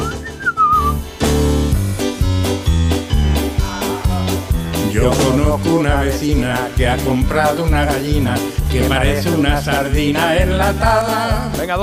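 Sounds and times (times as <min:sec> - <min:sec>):
Mickey Mouse whistling at a ship's wheel in an old black-and-white cartoon: 0:00.0 - 0:01.1
bouncy band accompaniment with punchy chords: 0:00.0 - 0:11.8
speech: 0:05.0 - 0:11.8.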